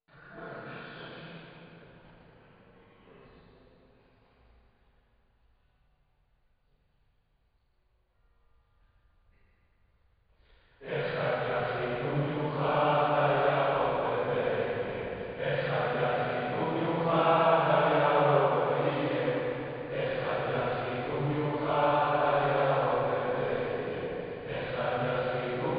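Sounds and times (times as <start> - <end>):
choir singing: 10.8 - 25.7.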